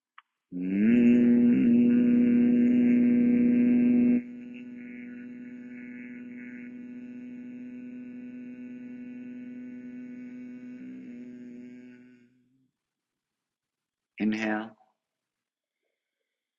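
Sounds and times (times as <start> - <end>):
speech: 0.5 - 1.0
person humming on a long exhale: 0.5 - 12.4.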